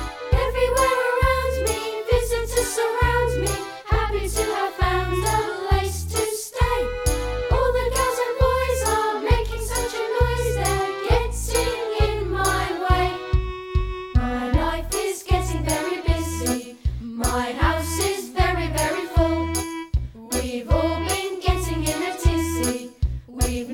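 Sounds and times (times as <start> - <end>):
choir singing: 0.2 - 13.5, 14.2 - 19.6, 20.3 - 22.9, 23.5 - 23.7.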